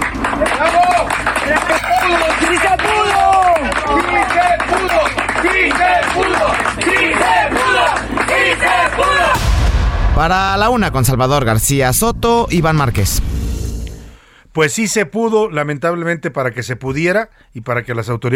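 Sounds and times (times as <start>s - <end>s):
crowd applauding: 0.0s - 9.5s
voices cheering: 0.0s - 9.5s
speech: 10.2s - 13.4s, 14.6s - 18.3s.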